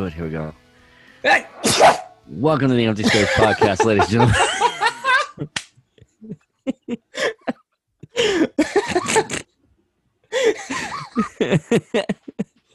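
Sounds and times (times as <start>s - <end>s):
speech: 0.0s - 0.6s, 1.2s - 4.6s, 5.4s - 5.6s, 11.5s - 12.2s
person sneezing: 1.3s - 2.1s
laughter: 3.0s - 9.5s, 10.4s - 12.7s.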